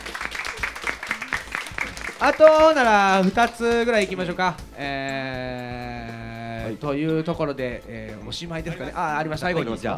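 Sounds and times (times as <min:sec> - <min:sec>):
audience applause: 0:00.0 - 0:03.6
speech: 0:02.2 - 0:05.8, 0:06.7 - 0:09.9.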